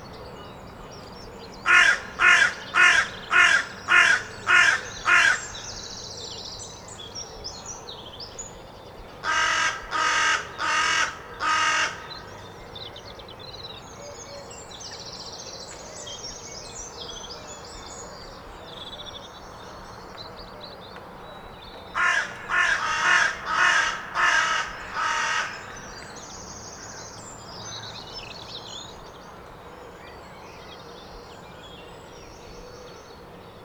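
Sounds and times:
carrion crow cawing: 0:01.7 - 0:05.5, 0:09.2 - 0:12.2, 0:22.0 - 0:26.1.

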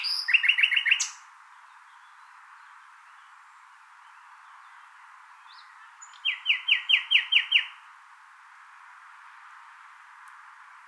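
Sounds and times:
common nightingale song: 0:00.0 - 0:07.9.

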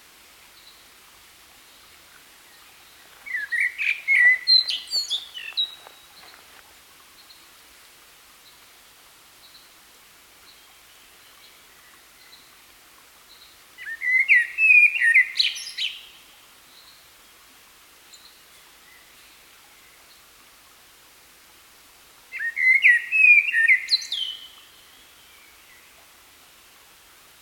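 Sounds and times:
common blackbird singing: 0:03.2 - 0:06.4, 0:13.8 - 0:16.0, 0:22.4 - 0:24.5.

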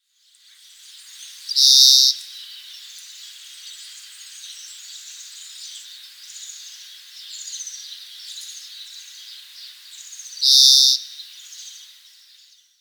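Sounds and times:
Chloris chloris: 0:01.5 - 0:02.3, 0:10.4 - 0:11.1.

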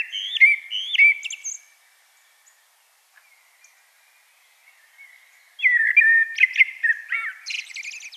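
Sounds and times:
common blackbird whistled song: 0:00.0 - 0:01.7, 0:04.7 - 0:08.1.

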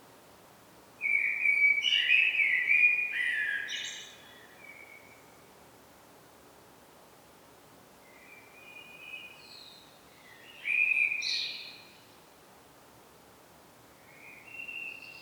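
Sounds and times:
common blackbird Turdus merula song: 0:01.0 - 0:05.2, 0:08.1 - 0:12.1, 0:14.1 - 0:15.2.

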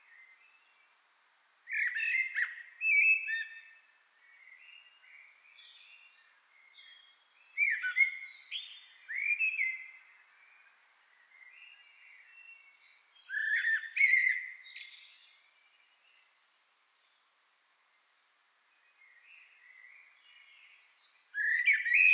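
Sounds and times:
common blackbird singing: 0:01.7 - 0:03.8, 0:04.4 - 0:10.0, 0:11.4 - 0:15.4, 0:19.0 - 0:22.1.

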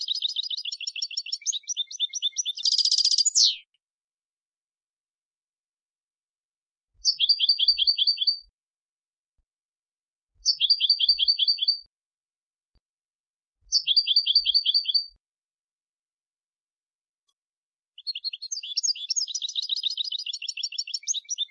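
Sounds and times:
European goldfinch twittering: 0:00.0 - 0:03.6, 0:07.0 - 0:08.4, 0:10.4 - 0:11.8, 0:13.7 - 0:15.1, 0:18.0 - 0:21.5.

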